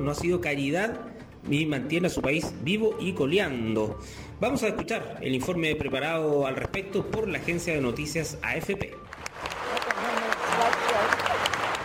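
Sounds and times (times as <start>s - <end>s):
speech: 0.0s - 9.1s
standing ovation applause in the US Congress: 9.1s - 11.8s
voices cheering: 9.3s - 11.8s.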